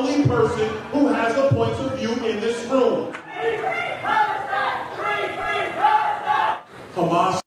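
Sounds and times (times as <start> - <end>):
speech: 0.2 - 4.2
crowd screaming a chant at a town hall: 3.2 - 6.7.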